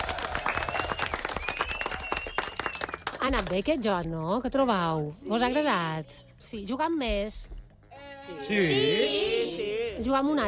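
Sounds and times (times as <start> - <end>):
applause: 0.0 - 3.7
speech: 3.2 - 7.6, 8.2 - 10.4.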